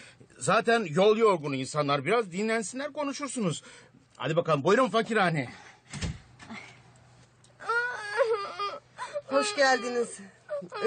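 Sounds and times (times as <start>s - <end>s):
speech: 0.4s - 6.0s, 9.3s - 10.8s
baby girl crying in a staged Turkish drama scene: 7.6s - 10.8s.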